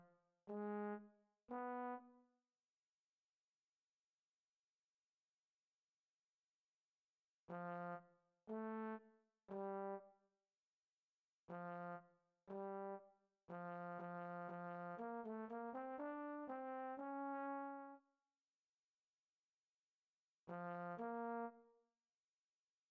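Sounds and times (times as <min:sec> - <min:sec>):
classical trombone music: 0:00.0 - 0:02.1, 0:07.5 - 0:10.0, 0:11.5 - 0:18.0, 0:20.5 - 0:21.6.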